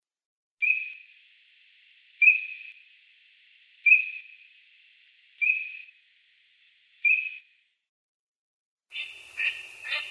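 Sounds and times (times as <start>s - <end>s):
Eurasian teal Anas crecca giving short high whistled notes: 0.6s - 1.3s, 2.0s - 2.9s, 3.8s - 4.6s, 5.3s - 6.0s, 6.9s - 7.6s, 8.9s - 10.0s.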